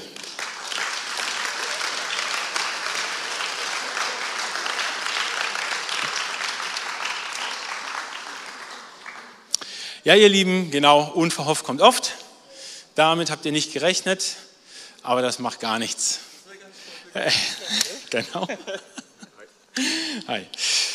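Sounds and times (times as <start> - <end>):
warm applause from the audience: 0.0 - 9.8
laughter: 1.4 - 6.4, 16.9 - 20.2
speech: 10.0 - 12.2, 13.0 - 16.3, 17.2 - 19.0, 19.8 - 20.6.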